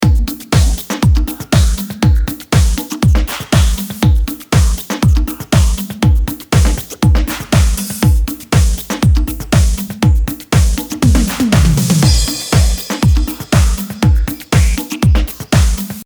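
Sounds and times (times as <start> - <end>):
beats: 0.0 - 16.0.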